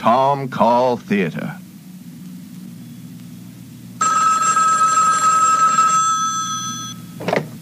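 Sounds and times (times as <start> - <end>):
speech: 0.0 - 1.6
telephone bell ringing: 4.0 - 7.2.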